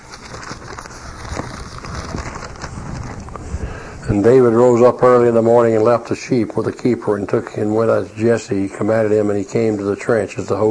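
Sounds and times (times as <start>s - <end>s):
paper pages of a book being unstuck: 0.0s - 3.6s
speech: 4.1s - 10.6s.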